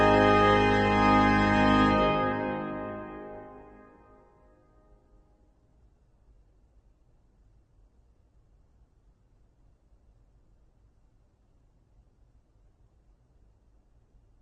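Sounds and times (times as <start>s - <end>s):
organ playing classical music: 0.0s - 4.1s.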